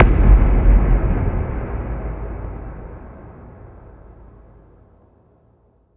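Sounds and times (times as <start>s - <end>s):
effect kick drum hits: 0.0s - 3.0s.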